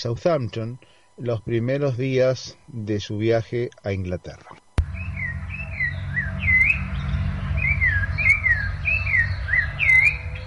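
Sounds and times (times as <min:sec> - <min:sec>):
speech: 0:00.0 - 0:04.6
low rumble: 0:04.8 - 0:10.4
thrush singing: 0:04.8 - 0:10.4.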